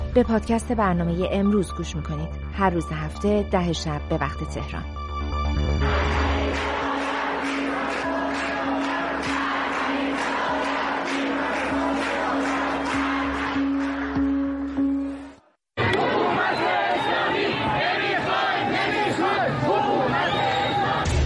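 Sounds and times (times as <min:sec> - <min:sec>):
speech: 0:00.1 - 0:05.0
large protest crowd chanting slogans in unison: 0:05.8 - 0:14.6, 0:15.8 - 0:21.2.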